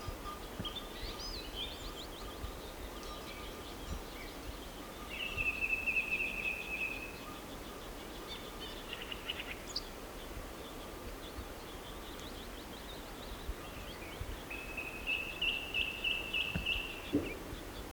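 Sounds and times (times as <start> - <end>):
birds singing: 0.0 - 17.9.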